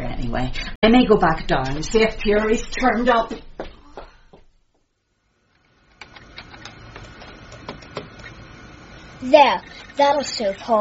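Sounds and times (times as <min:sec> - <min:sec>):
speech: 0:00.2 - 0:03.5, 0:09.2 - 0:10.7
printer printing a page: 0:05.6 - 0:10.7.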